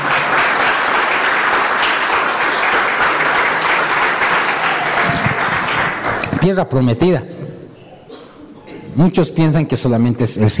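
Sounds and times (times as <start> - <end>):
audience applause: 0.0 - 6.3
speech: 6.4 - 7.3, 9.0 - 10.5.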